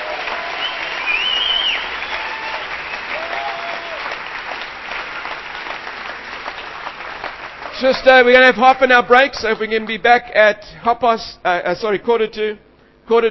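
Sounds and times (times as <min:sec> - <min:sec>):
faint whoops and voices: 0:00.0 - 0:04.1
audience clapping: 0:00.0 - 0:10.0
speech: 0:07.8 - 0:13.2.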